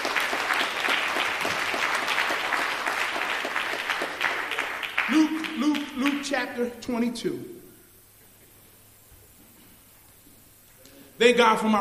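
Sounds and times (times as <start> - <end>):
hand clapping of praise: 0.0 - 6.5
speech: 6.2 - 7.6, 11.2 - 11.7.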